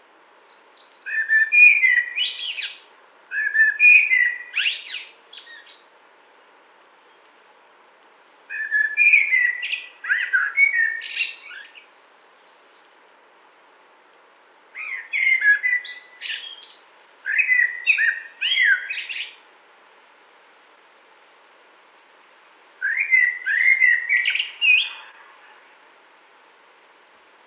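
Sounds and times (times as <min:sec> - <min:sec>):
common blackbird singing: 0:00.4 - 0:05.8, 0:07.8 - 0:11.9, 0:14.8 - 0:19.4, 0:22.8 - 0:25.6.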